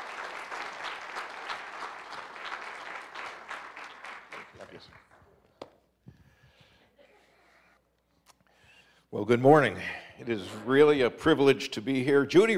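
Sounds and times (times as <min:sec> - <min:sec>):
congregation applauding guest speakers at a church morning service: 0:00.0 - 0:05.5
speech: 0:09.1 - 0:12.5.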